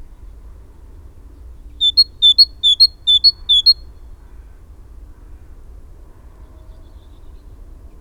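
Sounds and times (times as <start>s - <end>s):
great tit giving crisp two-note phrases: 1.8s - 3.8s.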